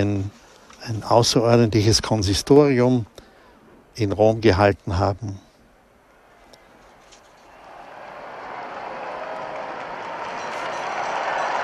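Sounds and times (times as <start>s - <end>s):
speech: 0.0s - 3.2s, 4.0s - 5.4s
large crowd cheering: 6.3s - 11.6s.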